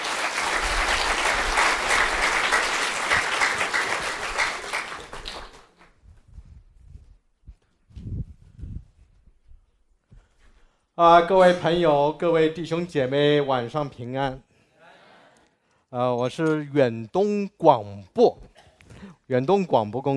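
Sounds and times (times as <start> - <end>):
audience applause: 0.0 - 5.9
faint shuffling: 5.9 - 10.9
speech: 11.0 - 14.5, 15.9 - 18.5, 19.3 - 20.1.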